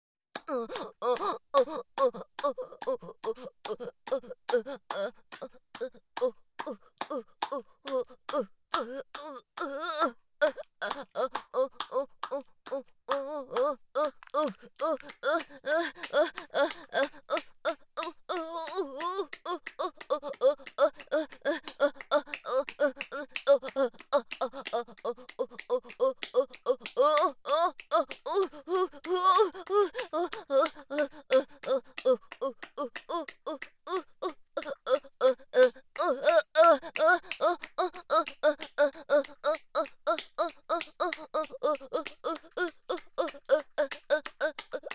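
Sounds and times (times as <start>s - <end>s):
person moaning: 0.4s - 44.9s.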